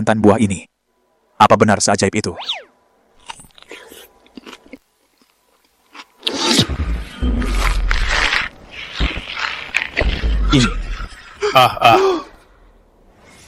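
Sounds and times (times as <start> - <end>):
speech: 0.0 - 0.7, 1.4 - 2.7, 10.5 - 10.8, 11.5 - 12.2
biting and chewing a peach: 3.2 - 10.5.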